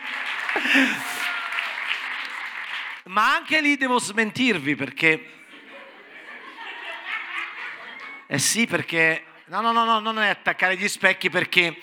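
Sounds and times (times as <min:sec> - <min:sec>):
audience applause: 0:00.0 - 0:03.0
speech: 0:00.5 - 0:01.2, 0:03.1 - 0:05.4, 0:08.3 - 0:11.8
laughter: 0:00.5 - 0:01.4, 0:05.4 - 0:08.3.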